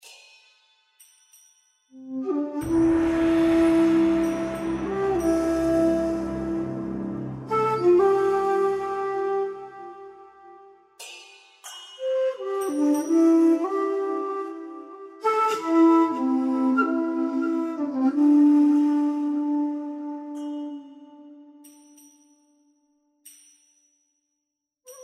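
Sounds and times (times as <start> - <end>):
background music: 2.0 - 11.4, 12.0 - 21.9.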